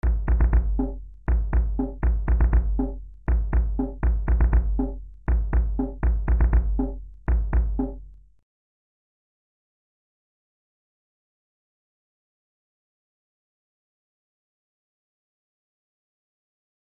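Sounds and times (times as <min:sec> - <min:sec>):
drum: 0:00.0 - 0:08.1.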